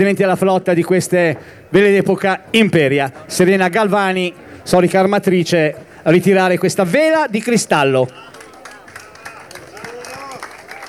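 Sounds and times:
speech: 0.0 - 8.4
applause: 7.8 - 10.8.

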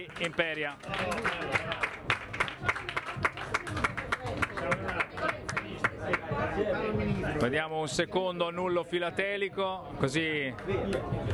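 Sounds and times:
crowd applause: 0.0 - 6.2
speech: 0.1 - 1.9, 6.6 - 11.3
faint murmuring voices: 0.7 - 11.3.

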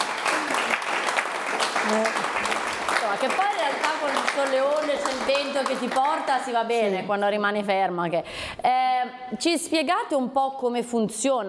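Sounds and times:
audience applause: 0.0 - 6.6
speech: 1.9 - 2.2, 3.2 - 11.4.

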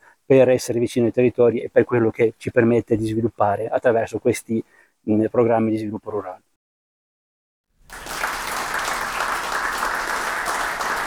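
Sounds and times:
speech: 0.3 - 6.5
audience applause: 7.9 - 11.0.

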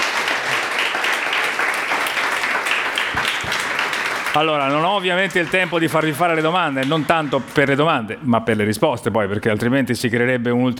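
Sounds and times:
audience applause: 0.0 - 8.1
speech: 4.4 - 10.7.

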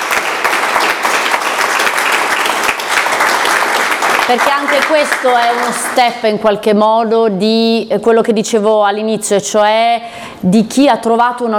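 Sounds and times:
crowd applause: 0.0 - 6.1
speech: 4.3 - 11.5.

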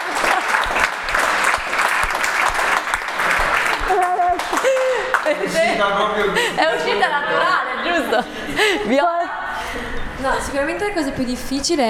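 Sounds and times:
audience applauding: 0.0 - 6.5
laughter: 0.0 - 10.7
speech: 5.8 - 9.2, 10.2 - 11.8.

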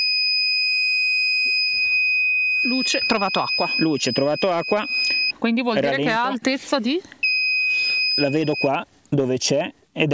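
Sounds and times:
water sensor alarm high-pitched electronic tone: 0.0 - 5.4, 7.2 - 8.8
speech: 2.6 - 7.2, 8.2 - 10.1.

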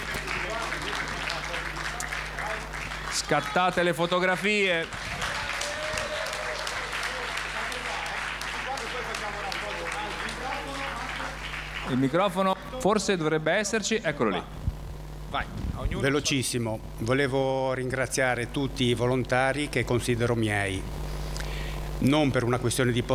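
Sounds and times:
audience applause: 0.0 - 12.8
speech: 3.3 - 5.1, 11.9 - 14.6, 15.3 - 21.0, 22.0 - 23.1.

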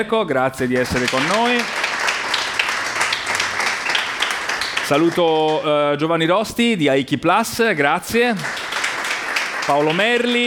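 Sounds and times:
speech: 0.0 - 1.8, 4.9 - 8.6, 9.7 - 10.4
audience applause greeting a guest at a business event: 0.7 - 5.8, 8.3 - 10.4.

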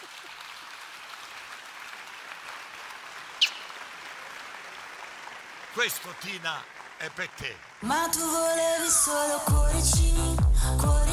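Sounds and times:
audience applause: 0.0 - 8.4
speech: 5.8 - 11.1.

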